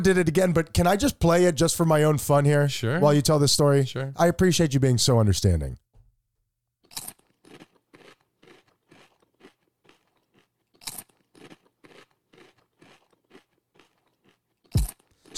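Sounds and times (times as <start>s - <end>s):
speech: 0.0s - 5.8s
crunching chips on a hot dog: 6.9s - 15.3s.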